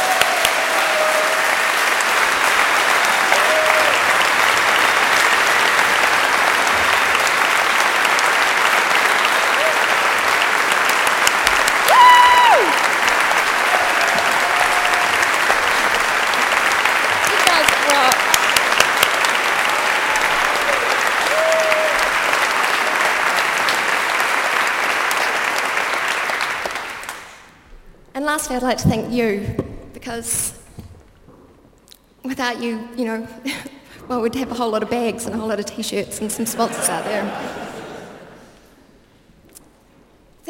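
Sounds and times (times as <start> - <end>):
audience applause: 0.0 - 27.6
speech: 28.5 - 30.6, 32.3 - 37.6
laughter: 36.4 - 38.6.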